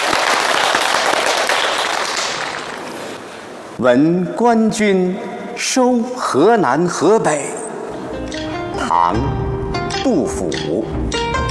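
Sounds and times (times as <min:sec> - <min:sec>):
crowd applauding: 0:00.0 - 0:03.2
speech: 0:03.8 - 0:07.6, 0:09.0 - 0:09.4, 0:10.0 - 0:11.2.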